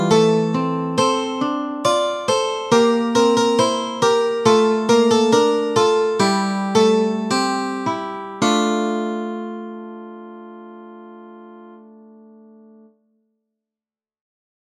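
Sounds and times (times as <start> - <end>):
guitar: 0.0 - 10.0.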